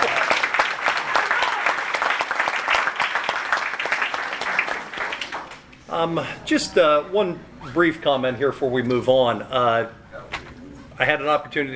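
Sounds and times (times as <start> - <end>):
audience applauding parents of student athletes: 0.0 - 5.7
speech: 6.0 - 10.0, 11.0 - 11.7.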